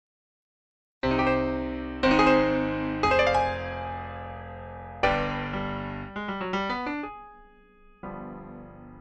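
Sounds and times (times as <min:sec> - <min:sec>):
czardas music in E-flat: 0:01.0 - 0:07.1.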